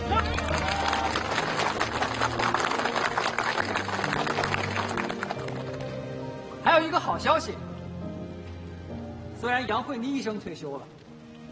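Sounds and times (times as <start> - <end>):
warm audience applause: 0.1 - 6.1
speech: 6.8 - 7.7, 9.4 - 11.0.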